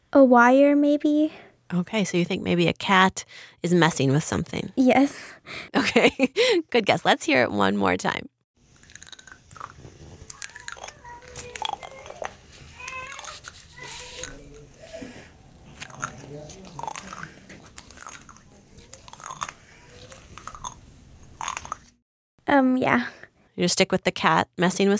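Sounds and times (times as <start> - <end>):
speech: 0.1 - 8.3, 22.5 - 24.9
sticky cast tape unrolling with popping crackles: 11.2 - 14.6.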